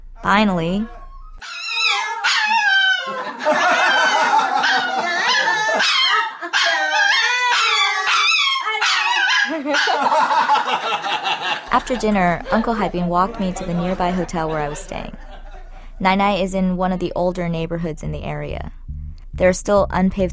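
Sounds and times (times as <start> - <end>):
speech: 0.2 - 1.6, 9.6 - 15.2, 16.0 - 18.8, 19.4 - 20.3
dog howling on command: 0.9 - 10.0
laughter: 2.5 - 7.1, 9.4 - 16.0.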